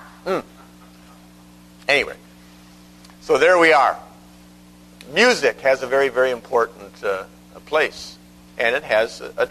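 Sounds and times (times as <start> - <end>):
person clearing throat: 0.3 - 0.8
speech: 1.9 - 2.2, 3.3 - 4.1, 5.1 - 9.4.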